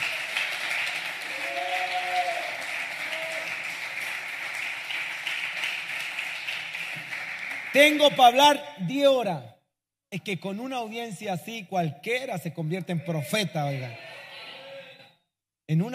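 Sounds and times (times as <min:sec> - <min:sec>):
audience applause: 0:00.0 - 0:08.2
speech: 0:07.8 - 0:09.5, 0:10.1 - 0:14.1, 0:15.7 - 0:15.9.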